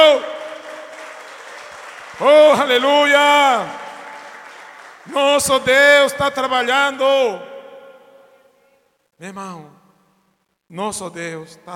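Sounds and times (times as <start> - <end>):
audience applause: 0.0 - 5.5
speech: 2.2 - 3.8, 5.0 - 7.5, 9.2 - 9.8, 10.7 - 11.7.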